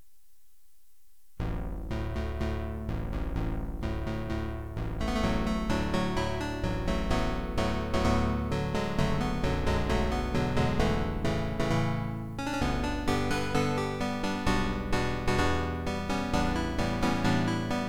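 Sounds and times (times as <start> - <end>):
synth: 1.9 - 17.8.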